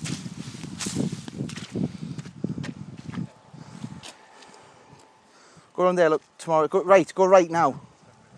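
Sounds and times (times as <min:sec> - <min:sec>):
footsteps squelching through wet mud: 0:00.0 - 0:05.1
speech: 0:05.8 - 0:07.9.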